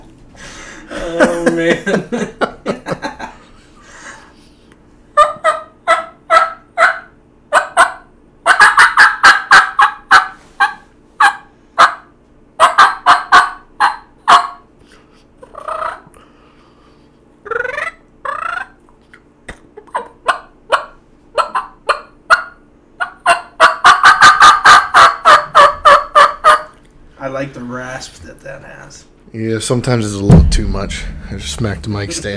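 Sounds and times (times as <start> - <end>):
laughter: 0.9 - 4.1
speech: 1.0 - 2.4, 29.7 - 32.3
turkey call imitating turkey yelps: 5.2 - 14.7, 15.4 - 16.1, 17.4 - 18.8, 19.8 - 26.8.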